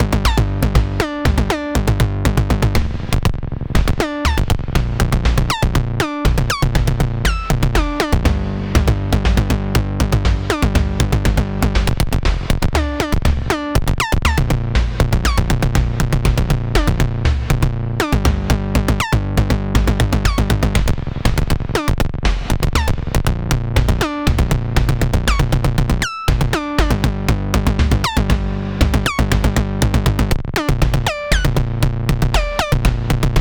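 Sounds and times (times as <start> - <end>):
Nord Drum 3 electronic drum: 0.0 - 33.3.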